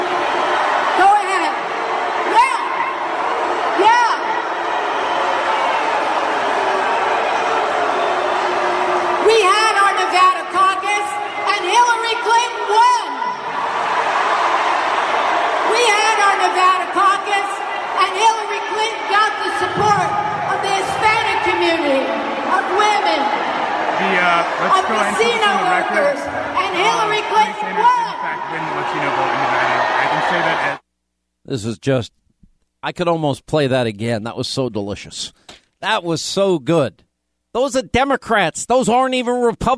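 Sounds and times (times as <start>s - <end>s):
crowd booing a speaker: 0.0s - 30.8s
speech: 31.6s - 32.2s, 32.8s - 39.7s.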